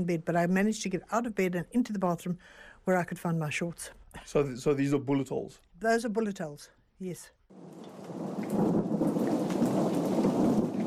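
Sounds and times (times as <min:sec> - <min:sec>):
speech: 0:00.0 - 0:08.2
thunderstorm with heavy rain: 0:07.6 - 0:10.8.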